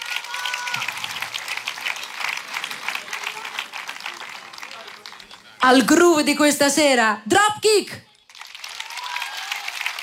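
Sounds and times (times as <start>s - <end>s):
audience applause for a trumpeter and a guitarist at a live band gig: 0.0s - 5.6s, 8.1s - 10.0s
speech: 5.6s - 8.1s.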